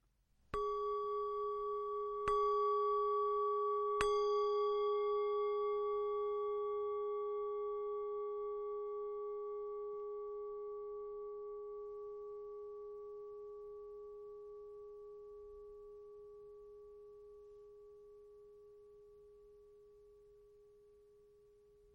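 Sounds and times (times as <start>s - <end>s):
meditation bell ringing: 0.6s - 10.6s.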